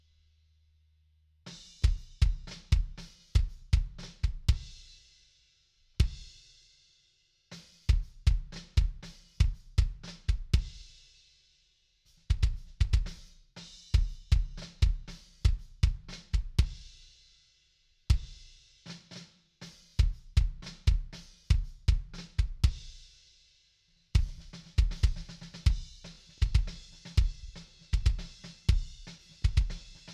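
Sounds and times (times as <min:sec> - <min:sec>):
kick drum: 0:01.8 - 0:04.8, 0:06.0 - 0:06.3, 0:07.9 - 0:10.8, 0:12.2 - 0:13.3, 0:13.9 - 0:17.0, 0:18.1 - 0:18.5, 0:20.0 - 0:23.0, 0:24.2 - 0:30.1.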